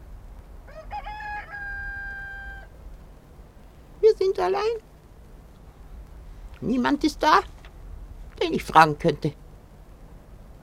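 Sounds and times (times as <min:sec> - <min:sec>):
low hum: 0:00.0 - 0:10.6
rooster crowing: 0:00.7 - 0:02.8
speech: 0:04.2 - 0:04.9, 0:06.6 - 0:07.5, 0:08.4 - 0:09.4.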